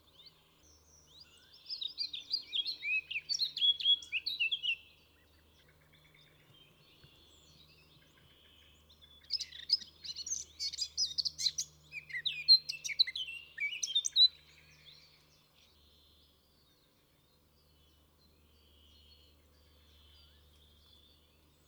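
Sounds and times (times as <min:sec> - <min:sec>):
Eurasian blackcap singing: 0:01.0 - 0:04.9, 0:08.9 - 0:15.1.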